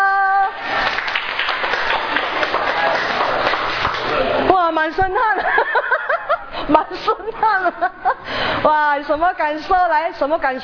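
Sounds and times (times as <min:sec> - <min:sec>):
group clapping hands: 0:00.6 - 0:04.3
speech: 0:04.9 - 0:05.9, 0:06.7 - 0:10.6
laughter: 0:05.2 - 0:08.3.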